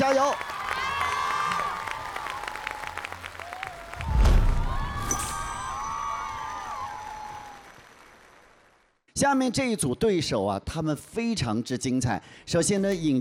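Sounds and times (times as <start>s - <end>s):
audience applause at a televised dance competition: 0.0s - 9.0s
speech: 9.2s - 13.1s.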